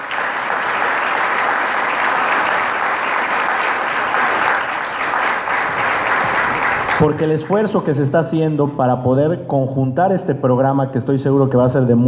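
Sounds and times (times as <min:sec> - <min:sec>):
audience applause: 0:00.0 - 0:07.7
speech: 0:07.0 - 0:12.0.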